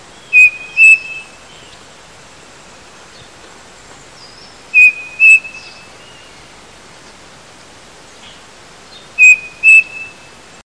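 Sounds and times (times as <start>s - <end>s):
background hiss: 0.0s - 10.6s
bird calling in whistled note pairs: 0.3s - 1.4s, 4.7s - 5.9s, 9.2s - 10.3s.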